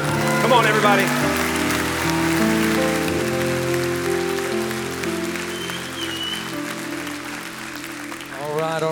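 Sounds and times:
keyboard chords: 0:00.0 - 0:08.5
audience applauding: 0:00.0 - 0:08.9
speech: 0:00.5 - 0:01.4.

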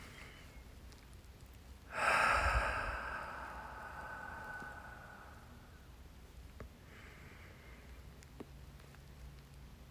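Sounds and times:
deep breath: 0:01.9 - 0:05.9, 0:06.8 - 0:08.0.

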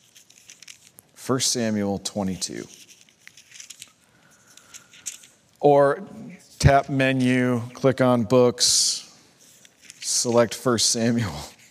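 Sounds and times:
Bible pages rustling during a church sermon: 0:00.0 - 0:01.2, 0:02.1 - 0:05.2, 0:09.4 - 0:10.6
speech: 0:01.3 - 0:02.8, 0:05.6 - 0:09.0, 0:10.2 - 0:11.6.

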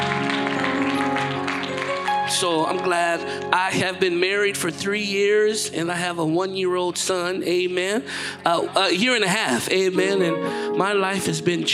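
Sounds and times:
church audience applause for the praise team and musicians: 0:00.0 - 0:03.5
sustained instrumental music: 0:00.0 - 0:04.8, 0:09.8 - 0:11.7
speech: 0:02.3 - 0:11.7.

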